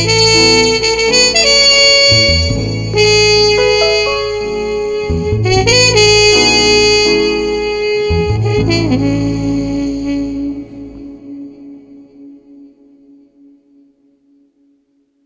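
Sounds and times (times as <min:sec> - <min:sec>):
soothing trumpet combo music without drums: 0:00.0 - 0:11.6.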